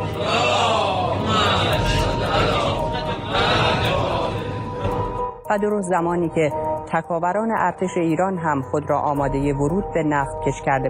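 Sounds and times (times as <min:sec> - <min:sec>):
crowd of men chanting salawat in unison: 0:00.0 - 0:04.9
speech: 0:05.5 - 0:10.8.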